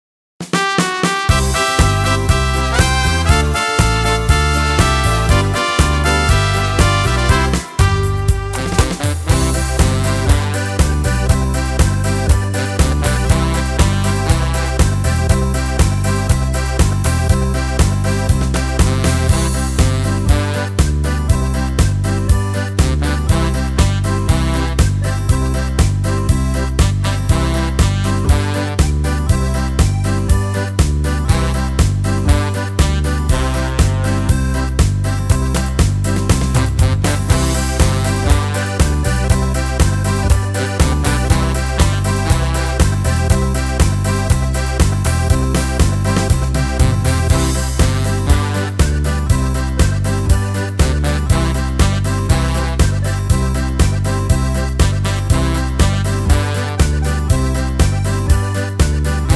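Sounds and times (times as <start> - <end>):
karaoke singing: 0.6 - 59.3.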